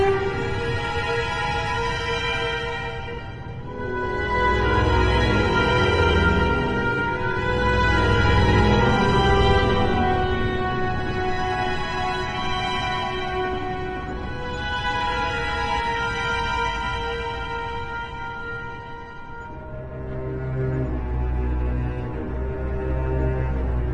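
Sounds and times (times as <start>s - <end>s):
dwarven fantasy music: 0.0s - 23.9s.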